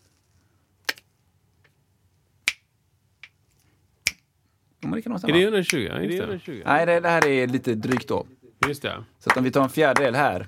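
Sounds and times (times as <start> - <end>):
speech: 4.9 - 10.4
sharp hand claps in an uneven rhythm: 7.1 - 10.4.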